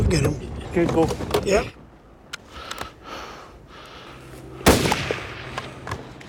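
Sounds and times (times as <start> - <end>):
speech: 0.1 - 1.8
gunshots in a video game: 4.7 - 5.6
bullet hits in a video game: 4.7 - 6.2.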